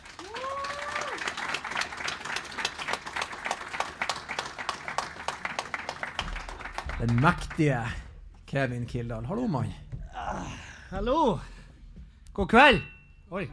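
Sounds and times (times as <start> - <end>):
audience applause: 0.0 - 8.0
speech: 7.0 - 9.8, 10.9 - 11.5, 12.4 - 13.5.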